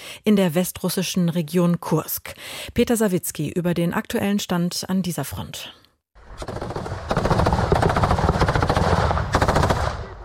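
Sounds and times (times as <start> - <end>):
speech: 0.2 - 5.8, 6.4 - 7.2
machine gun fire: 6.3 - 10.2.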